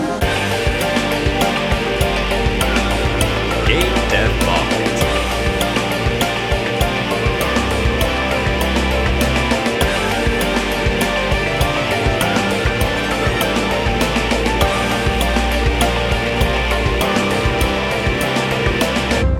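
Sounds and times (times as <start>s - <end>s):
battle music: 0.2s - 19.3s.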